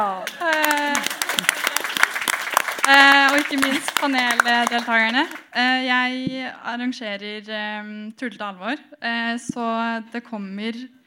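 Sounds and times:
audience applause: 0:00.2 - 0:05.6
speech: 0:03.4 - 0:11.0.

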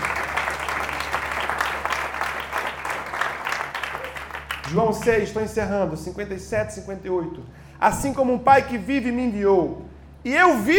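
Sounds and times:
audience applauding: 0:00.0 - 0:05.2
speech: 0:04.7 - 0:10.7.

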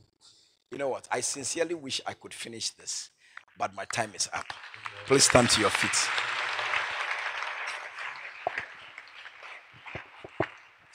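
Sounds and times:
speech: 0:00.7 - 0:06.4
audience clapping hands: 0:03.6 - 0:10.9.

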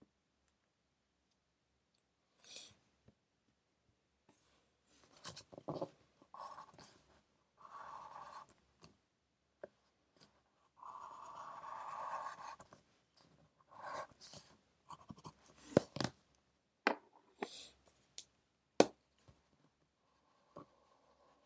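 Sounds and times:
pencil scratching while studying: 0:05.1 - 0:07.0, 0:07.6 - 0:08.5, 0:10.7 - 0:12.8, 0:13.6 - 0:15.8.

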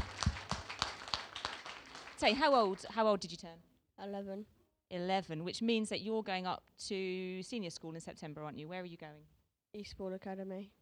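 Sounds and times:
light applause from church audience: 0:00.0 - 0:03.0
speech: 0:02.2 - 0:10.8.

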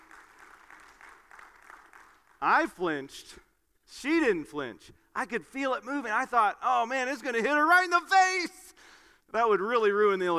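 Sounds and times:
audience round of applause: 0:00.0 - 0:02.6
speech: 0:02.4 - 0:10.3.

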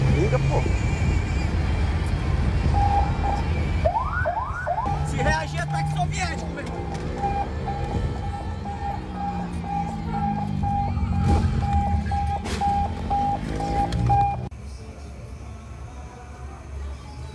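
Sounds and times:
people's voices: 0:00.0 - 0:01.4, 0:04.9 - 0:17.3
rumbling traffic noise: 0:00.0 - 0:17.3
police car siren: 0:02.7 - 0:14.5.

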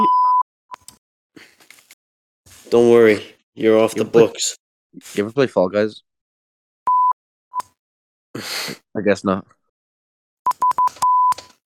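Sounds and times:
Morse code style beeps: 0:00.0 - 0:00.9, 0:06.9 - 0:07.6, 0:10.5 - 0:11.6
speech: 0:02.7 - 0:06.1, 0:08.4 - 0:09.6.

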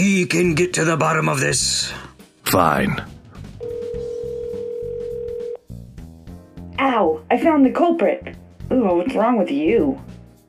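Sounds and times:
speech: 0:00.0 - 0:03.2, 0:06.9 - 0:10.1
telephone dial tone: 0:03.6 - 0:05.6.

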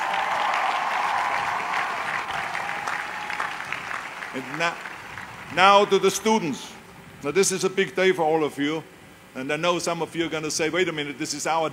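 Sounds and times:
audience applause: 0:00.0 - 0:06.0
speech: 0:04.4 - 0:04.9, 0:05.5 - 0:11.7.

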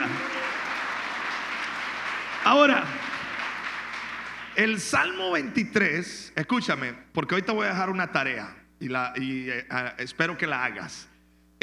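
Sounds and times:
applause: 0:00.0 - 0:05.4
speech: 0:02.5 - 0:03.0, 0:04.6 - 0:11.6.

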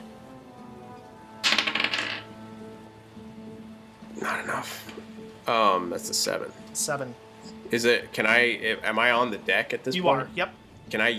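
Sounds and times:
dice being rolled: 0:01.4 - 0:02.3
speech: 0:04.6 - 0:11.1.

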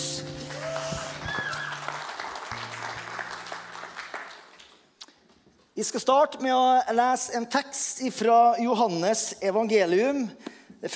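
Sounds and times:
audience applauding: 0:00.0 - 0:05.0
speech: 0:05.8 - 0:10.9.

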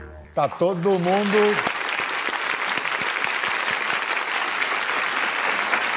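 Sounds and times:
speech: 0:00.4 - 0:01.7
audience applause: 0:00.4 - 0:05.9.

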